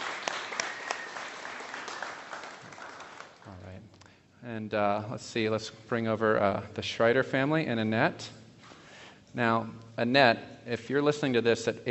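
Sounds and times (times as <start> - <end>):
church congregation applauding a newly baptized woman: 0.0 - 3.5
speech: 4.5 - 8.4, 9.4 - 11.8.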